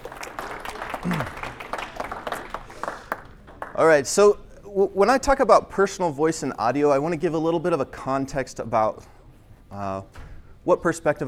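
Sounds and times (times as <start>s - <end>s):
audience applause: 0.0s - 3.8s
speech: 1.0s - 1.4s, 3.8s - 11.2s.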